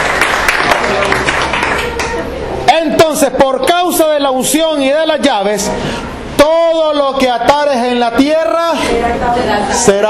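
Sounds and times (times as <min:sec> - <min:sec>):
crowd applauding loudly in praise of Jesus Christ: 0:00.0 - 0:02.4
speech: 0:03.2 - 0:10.0.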